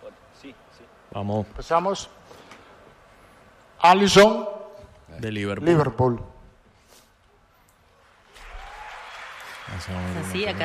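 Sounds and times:
speech: 0:00.4 - 0:02.4, 0:03.8 - 0:06.3, 0:09.7 - 0:10.6
audience applauding: 0:08.1 - 0:10.6.

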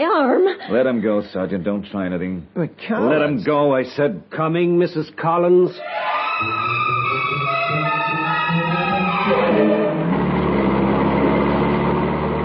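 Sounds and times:
speech: 0:00.0 - 0:10.0
car engine as the car drives off: 0:08.5 - 0:12.4.

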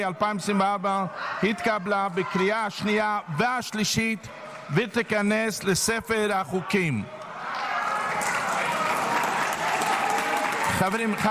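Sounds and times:
speech: 0:00.0 - 0:07.2, 0:10.8 - 0:11.3
applause in parliament: 0:07.8 - 0:11.3.

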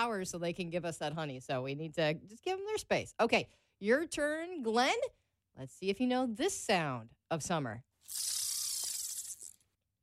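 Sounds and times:
speech: 0:00.0 - 0:08.5
fishing reel whirring as line is cast: 0:08.1 - 0:09.6.

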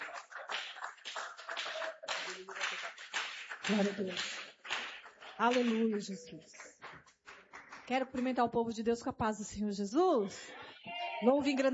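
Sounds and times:
audience clapping: 0:00.0 - 0:08.8
speech: 0:03.7 - 0:04.4, 0:05.4 - 0:06.6, 0:07.9 - 0:10.6, 0:11.2 - 0:11.7.

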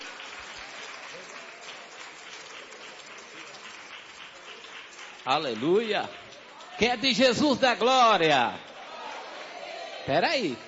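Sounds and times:
audience clapping hands joyfully: 0:00.0 - 0:10.6
speech: 0:05.2 - 0:06.2, 0:06.8 - 0:08.6, 0:10.1 - 0:10.6.

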